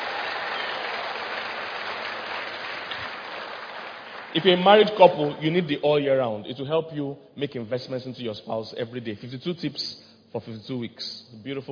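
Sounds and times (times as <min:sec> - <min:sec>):
audience clapping: 0:00.0 - 0:05.6
speech: 0:04.3 - 0:11.7.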